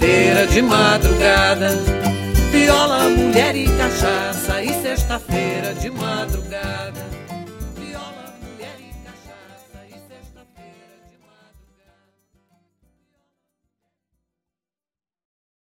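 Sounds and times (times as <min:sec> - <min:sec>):
toada folk song: 0:00.0 - 0:12.0.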